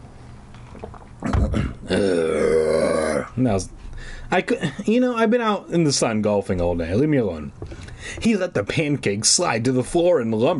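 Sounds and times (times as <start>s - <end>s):
person imitating a monster's deep growl: 1.2s - 3.4s
speech: 3.4s - 10.5s.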